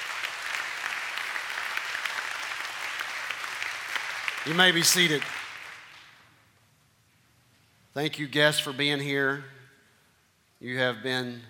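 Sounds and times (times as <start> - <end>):
audience hand clapping: 0.0 - 6.3
speech: 4.4 - 5.4, 8.0 - 9.6, 10.6 - 11.4.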